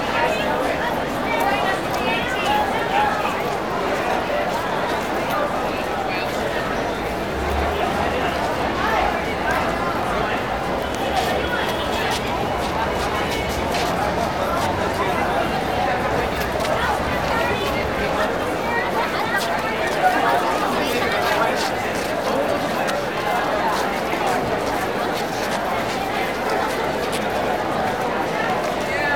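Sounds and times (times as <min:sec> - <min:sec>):
busy train station: 0:00.0 - 0:29.1
crowd walla: 0:00.0 - 0:29.1.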